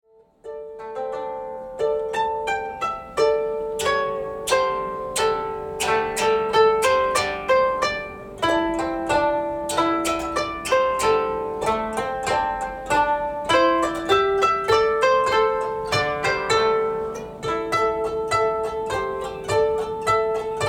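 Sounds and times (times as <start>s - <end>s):
children's song with koto: 0.1s - 20.6s.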